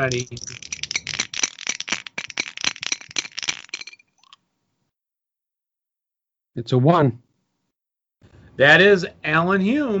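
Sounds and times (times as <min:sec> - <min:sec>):
speech: 0:00.0 - 0:00.6, 0:06.6 - 0:07.2, 0:08.6 - 0:09.9
dice rattling in a shot glass: 0:00.0 - 0:04.4.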